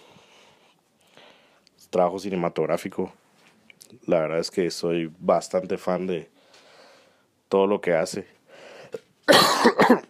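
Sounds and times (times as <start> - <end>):
speech: 1.9 - 3.2, 3.9 - 6.4, 7.5 - 8.4, 9.3 - 10.0
coughing: 9.2 - 10.0.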